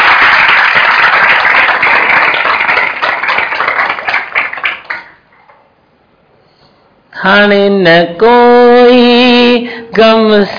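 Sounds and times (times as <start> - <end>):
crowd clapping: 0.0 - 5.3
speech: 7.2 - 9.2, 9.9 - 10.5.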